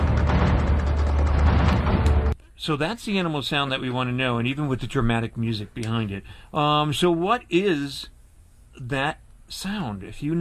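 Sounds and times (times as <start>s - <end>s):
thunder from a storm outside: 0.0s - 2.4s
speech: 2.6s - 8.1s, 8.8s - 10.4s.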